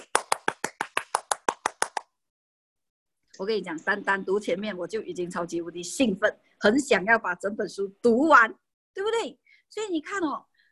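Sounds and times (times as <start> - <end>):
single pair of hands clapping: 0.0 - 2.2
speech: 3.4 - 10.5.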